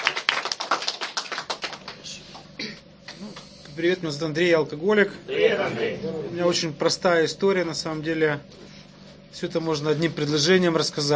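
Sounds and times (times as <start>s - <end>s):
audience applause: 0.0s - 2.2s
speech: 3.8s - 8.7s, 9.4s - 11.1s.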